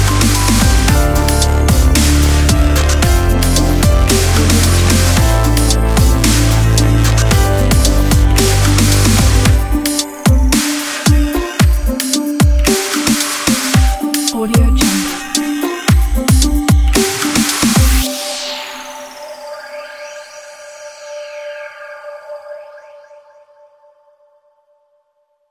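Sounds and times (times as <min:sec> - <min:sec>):
slow motion dubstep piano: 0:00.0 - 0:19.8.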